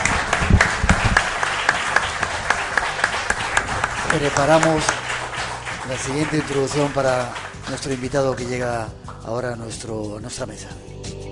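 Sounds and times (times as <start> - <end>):
audience applause: 0.0 - 8.7
speech: 4.2 - 5.0, 5.9 - 10.9.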